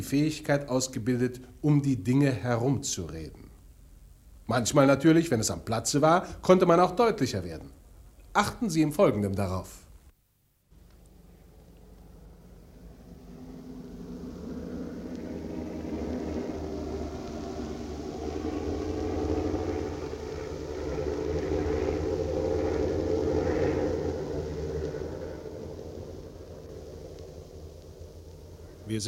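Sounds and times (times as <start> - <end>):
speech: 0.0 - 3.4, 4.5 - 7.8, 8.4 - 9.8
American airplane engine rumble at Prague airfield: 10.8 - 29.0.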